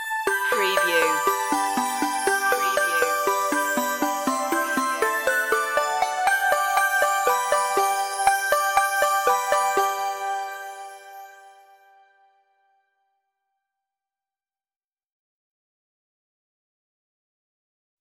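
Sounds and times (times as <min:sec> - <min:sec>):
synthified Christmas stinger outro: 0:00.2 - 0:12.8.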